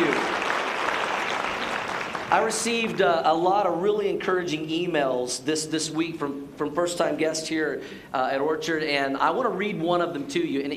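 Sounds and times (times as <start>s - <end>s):
applause: 0.0s - 2.8s
speech: 2.3s - 10.7s.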